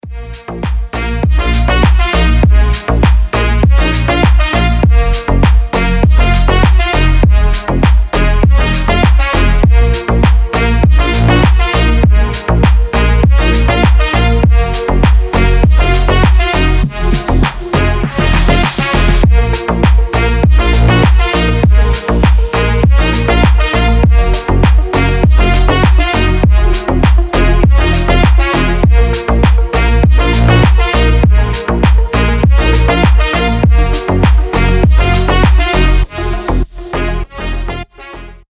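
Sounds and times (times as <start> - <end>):
techno music: 0.0 - 38.4.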